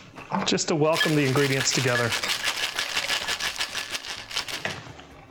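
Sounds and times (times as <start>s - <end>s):
speech: 0.5s - 2.5s
cocktail shaker shaken gently with an egg cocktail: 0.9s - 4.8s.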